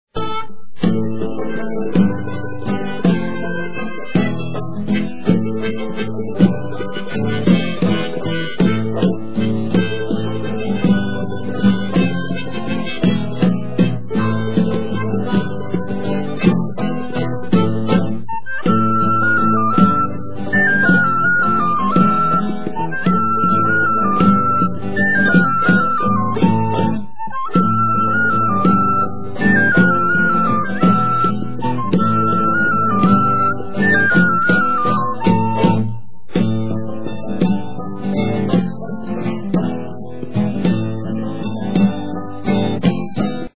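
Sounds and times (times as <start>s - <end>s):
mazurka: 0.1s - 43.5s.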